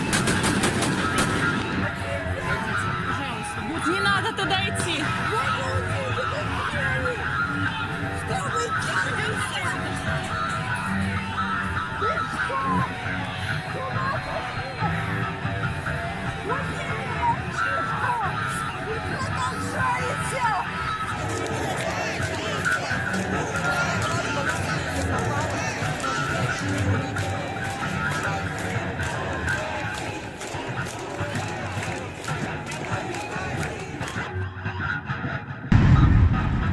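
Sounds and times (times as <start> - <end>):
protesters shouting and calling: 0.0 - 34.4
protest crowd babble in Belarus: 0.0 - 36.7.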